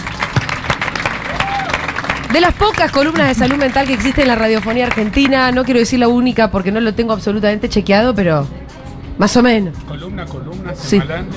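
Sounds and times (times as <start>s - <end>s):
crowd applause: 0.0s - 5.9s
speech: 2.3s - 8.6s, 9.2s - 11.3s.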